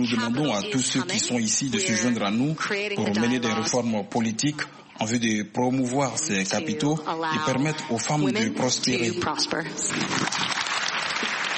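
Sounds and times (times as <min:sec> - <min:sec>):
speech: 0:00.0 - 0:10.4
women clapping at a summit: 0:09.9 - 0:11.5.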